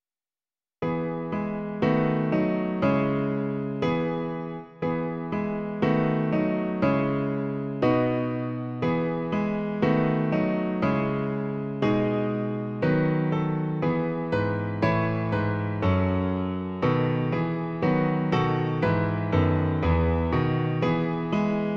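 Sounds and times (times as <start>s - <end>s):
piano version: 0.8s - 21.7s.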